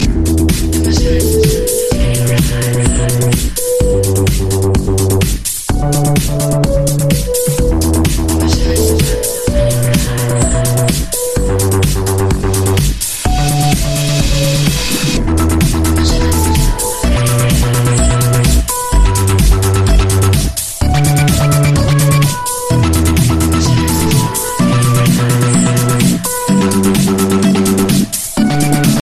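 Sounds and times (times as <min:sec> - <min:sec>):
tektonik electro dance ringtone: 0:00.0 - 0:29.0.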